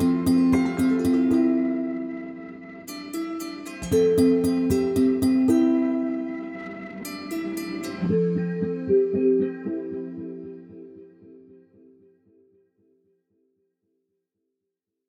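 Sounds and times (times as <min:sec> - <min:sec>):
lap harp playing: 0:00.0 - 0:10.9.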